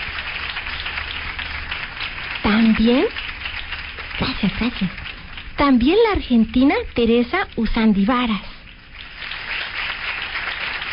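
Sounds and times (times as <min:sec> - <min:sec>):
audience applause: 0:00.0 - 0:05.6, 0:08.7 - 0:10.9
speech: 0:02.6 - 0:03.2, 0:04.2 - 0:05.0, 0:05.6 - 0:08.5.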